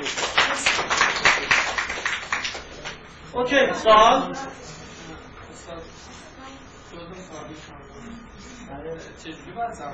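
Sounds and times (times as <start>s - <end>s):
group applause: 0.0s - 3.0s
speech: 3.4s - 4.6s, 8.8s - 9.9s.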